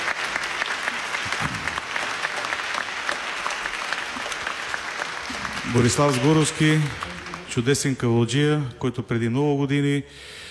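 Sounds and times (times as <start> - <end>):
concert audience applause: 0.0 - 8.2
speech: 5.7 - 7.0, 7.6 - 10.4.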